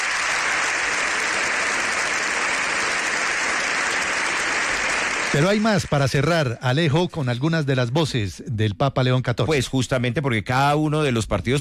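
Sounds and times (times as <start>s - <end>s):
ovation applause: 0.0s - 6.9s
speech: 5.3s - 11.6s.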